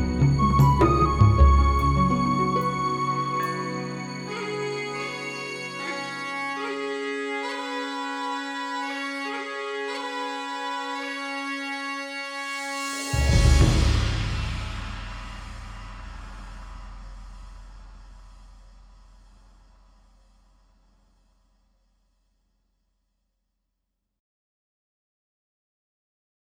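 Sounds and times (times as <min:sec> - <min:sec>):
orchestral demo song from XP-80: 0:00.0 - 0:18.0.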